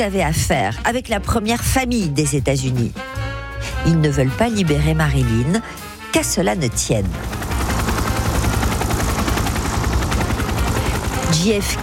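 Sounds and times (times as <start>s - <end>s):
speech: 0.0s - 7.4s, 11.3s - 11.8s
helicopter rotor blades: 6.3s - 11.8s.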